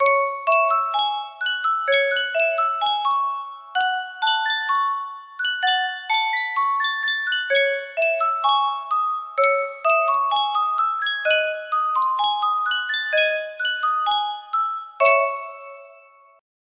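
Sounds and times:
Yunsheng custom tune music box: 0.0s - 16.4s.

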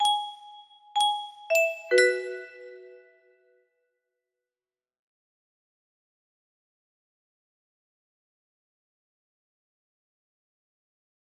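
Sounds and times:
melody: 0.0s - 3.0s.

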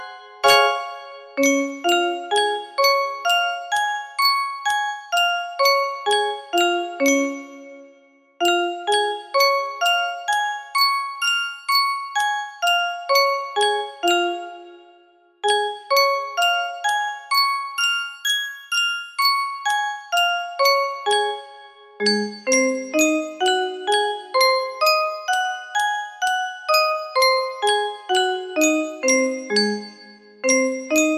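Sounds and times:
music box melody in D flat major: 0.0s - 31.1s.

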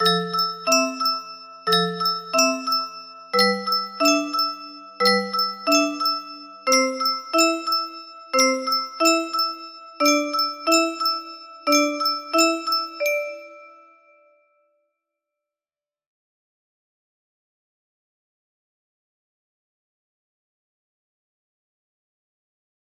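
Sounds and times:
melody: 0.0s - 14.3s.

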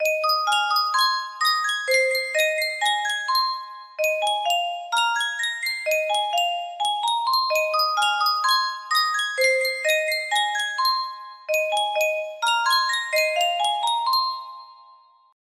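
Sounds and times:
Yunsheng music box: 0.0s - 15.4s.

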